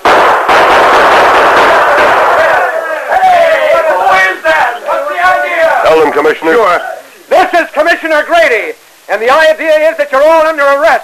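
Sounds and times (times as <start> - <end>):
gunfire in a western radio drama shootout: 0.0 - 2.7
men shouting: 1.4 - 8.6
speech: 6.3 - 6.9, 8.1 - 11.0.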